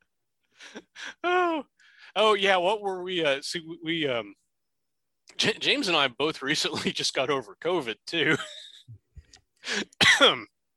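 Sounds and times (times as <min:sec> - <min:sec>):
breaths: 0:00.4 - 0:01.2, 0:01.8 - 0:02.2, 0:09.2 - 0:10.0
speech: 0:02.2 - 0:04.4, 0:05.4 - 0:09.0, 0:09.6 - 0:10.5
person coughing: 0:09.7 - 0:10.5.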